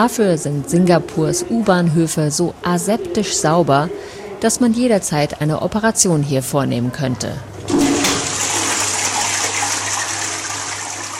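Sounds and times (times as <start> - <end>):
speech: 0.0 - 8.0
toilet flushing: 7.6 - 11.1.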